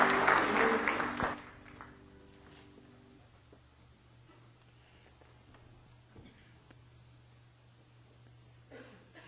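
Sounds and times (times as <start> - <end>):
audience hand clapping: 0.0 - 2.1.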